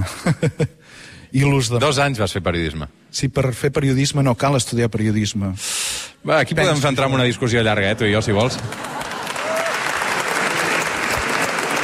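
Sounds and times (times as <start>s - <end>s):
laughter: 0.0s - 0.8s, 8.2s - 9.7s
speech: 0.2s - 0.7s, 1.3s - 9.0s
audience applause: 8.2s - 11.8s.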